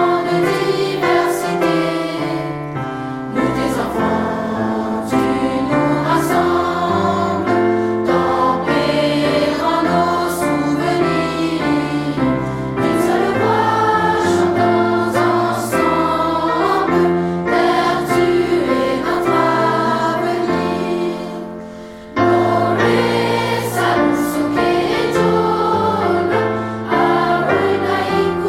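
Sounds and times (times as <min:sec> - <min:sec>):
children's choir singing a hymn: 0:00.0 - 0:28.4.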